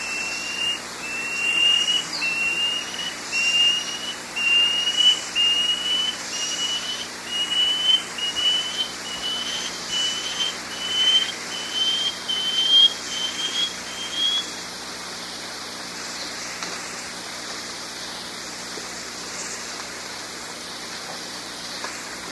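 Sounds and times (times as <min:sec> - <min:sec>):
Banded Antbird whistled call: 0:00.0 - 0:14.6.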